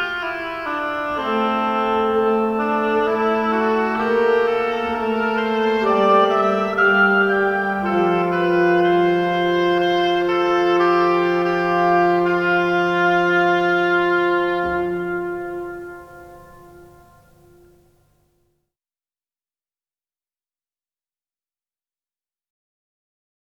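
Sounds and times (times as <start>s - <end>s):
oboe playing variations: 0.0s - 18.0s.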